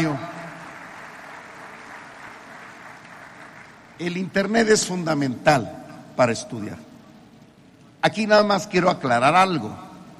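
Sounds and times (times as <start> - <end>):
speech: 0.0 - 0.3, 4.0 - 6.9, 8.0 - 9.8
audience applause: 0.0 - 4.0.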